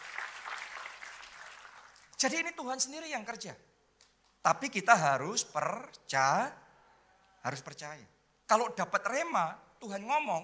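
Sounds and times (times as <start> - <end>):
crowd clapping: 0.0 - 2.2
speech: 2.2 - 3.7, 4.4 - 6.6, 7.4 - 10.4.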